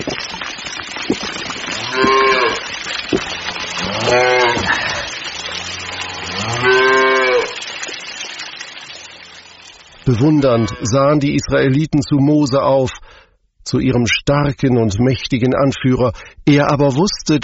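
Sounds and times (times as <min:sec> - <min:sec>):
cattle mooing: 0:01.6 - 0:07.8, 0:08.9 - 0:11.1
speech: 0:10.2 - 0:13.0, 0:13.7 - 0:17.4.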